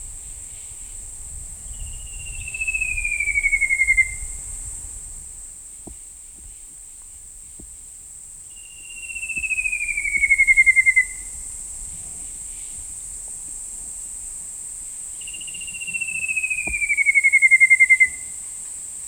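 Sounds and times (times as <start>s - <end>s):
Eastern Shining Flycatcher Myiagra alecto wardelli calling: 1.8s - 4.4s, 8.5s - 11.6s, 15.1s - 18.4s.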